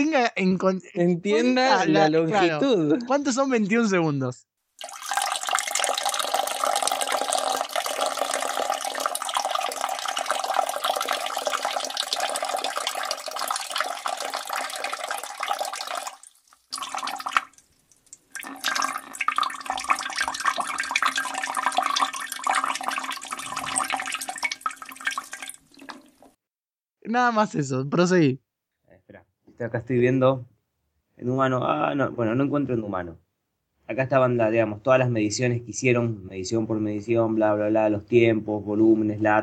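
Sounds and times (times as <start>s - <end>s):
speech: 0.0s - 5.0s, 27.3s - 28.4s, 29.6s - 30.5s, 31.2s - 33.2s, 33.9s - 39.4s
stream of liquid pouring: 4.8s - 26.4s.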